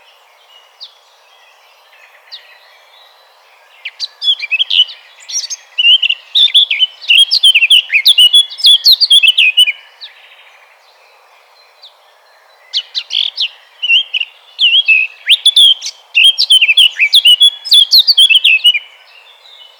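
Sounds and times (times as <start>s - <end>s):
Eurasian blackcap Sylvia atricapilla singing: 3.6s - 10.4s, 12.7s - 19.7s.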